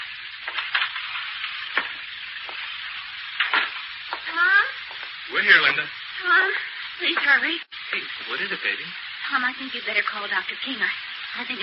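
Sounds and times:
rain pattering: 0.0 - 11.6
speech: 5.3 - 11.6.

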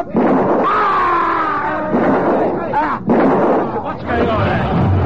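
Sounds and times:
gunshots: 0.1 - 0.9, 1.9 - 5.0.

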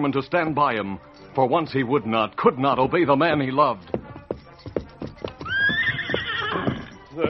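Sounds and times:
speech: 0.0 - 4.0
hoof clops: 2.5 - 7.2
white stallion Silver neighing: 5.4 - 7.2.

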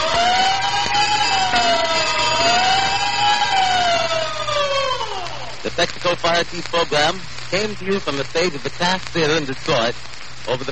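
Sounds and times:
fire engine siren wailing: 0.0 - 5.7
speech: 6.3 - 10.7.

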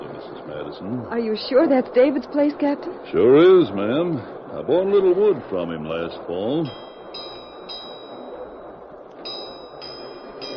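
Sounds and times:
speech: 0.5 - 7.3
ship's bells signaling the engine room: 5.8 - 10.5.

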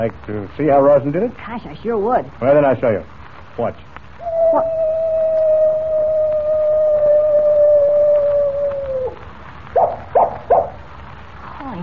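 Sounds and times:
speech: 0.0 - 4.9
coyote howling: 4.2 - 10.8.

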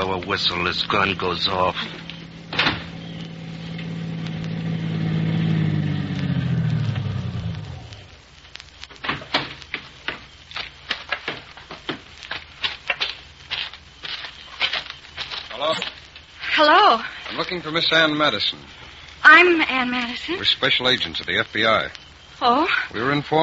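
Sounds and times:
car engine rumbling: 0.0 - 8.2
speech: 0.1 - 2.1, 17.6 - 23.4
crunching clicks and knocks: 1.8 - 4.4, 7.9 - 16.3.

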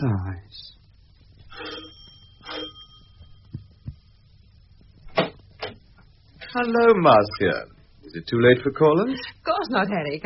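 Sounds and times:
speech: 0.0 - 0.8, 6.6 - 10.2
doorbell ringing: 1.5 - 3.6.

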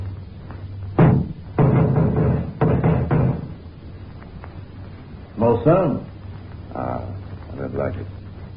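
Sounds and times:
knocking on a front door: 1.0 - 3.6
speech: 5.4 - 6.1.

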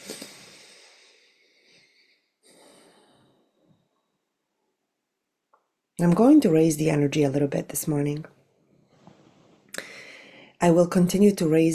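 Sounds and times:
deep breath in: 0.0 - 4.2, 9.0 - 10.6
speech: 6.0 - 8.4, 10.6 - 11.7.

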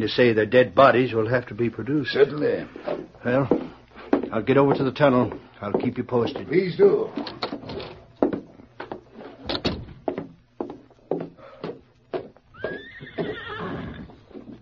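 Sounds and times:
speech: 0.0 - 3.7, 4.3 - 7.5
horse neighing: 12.5 - 14.3.

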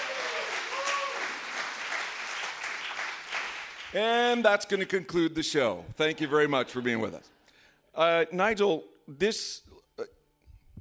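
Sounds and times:
audience applause: 0.0 - 4.0
speech: 3.9 - 7.4, 8.0 - 10.2.

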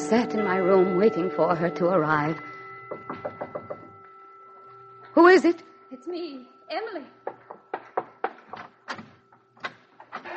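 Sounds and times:
speech: 0.1 - 3.3, 5.2 - 7.2
door being opened with clicks and creaky rattling knocks: 8.4 - 10.3.

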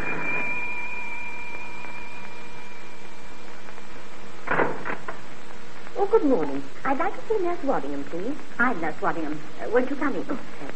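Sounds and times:
front door bell ringing: 0.0 - 3.5
speech: 6.0 - 10.7.

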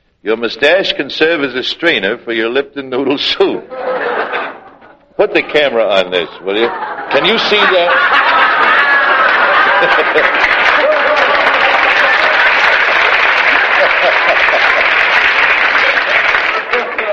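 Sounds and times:
speech: 0.2 - 3.9, 5.2 - 8.4, 9.8 - 10.5
laughter: 3.7 - 17.1
audience applauding: 6.6 - 17.1.

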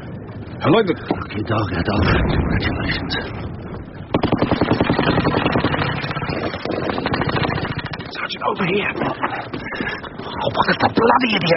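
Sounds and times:
speech: 0.6 - 3.6, 5.0 - 5.6, 8.1 - 11.5
machine gun fire: 4.1 - 8.2.

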